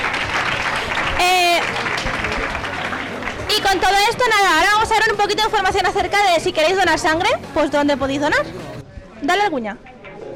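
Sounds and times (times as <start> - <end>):
audience applause: 0.0 - 4.2
speech: 3.7 - 8.6, 9.2 - 9.9.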